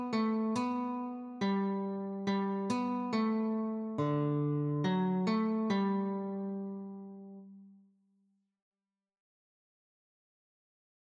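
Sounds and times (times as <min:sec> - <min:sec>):
guitar notes: 0:00.0 - 0:07.7.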